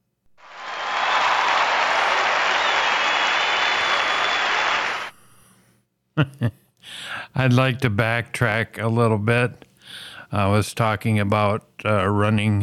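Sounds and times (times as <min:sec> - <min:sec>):
men cheering and applauding: 0:00.4 - 0:05.2
speech: 0:06.2 - 0:12.6.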